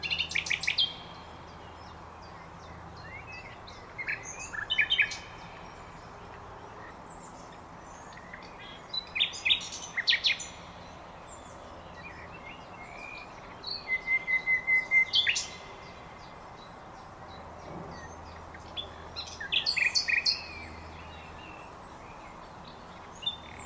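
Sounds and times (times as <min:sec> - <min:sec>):
common nightingale singing: 0:00.0 - 0:23.6.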